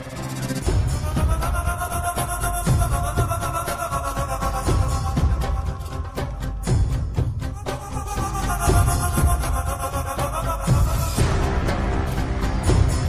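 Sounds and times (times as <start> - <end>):
holiday background music: 0.0 - 13.0.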